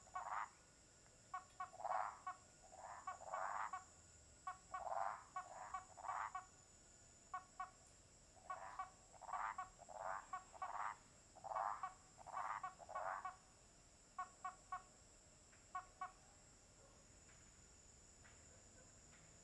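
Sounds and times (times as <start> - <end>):
toads croaking at a lake at nightfall: 0.0 - 0.6, 1.3 - 3.9, 4.5 - 6.5, 7.3 - 7.8, 8.4 - 13.4.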